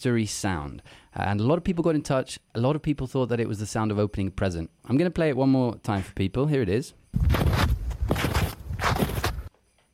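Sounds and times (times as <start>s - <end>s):
speech: 0.0s - 8.3s
footsteps crunching in snow: 7.2s - 9.5s.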